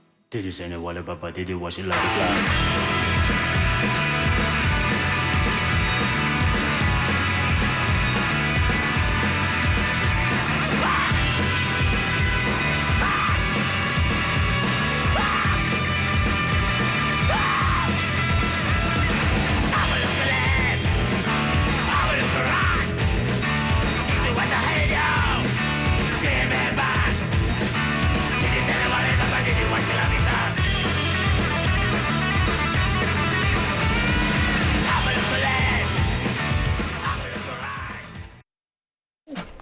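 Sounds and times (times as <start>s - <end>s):
speech: 0.3s - 4.6s
song playing: 2.0s - 38.0s.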